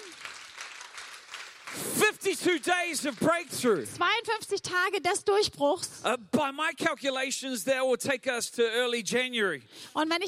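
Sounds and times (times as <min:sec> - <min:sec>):
audience applause: 0:00.0 - 0:04.0
speech: 0:02.0 - 0:10.2.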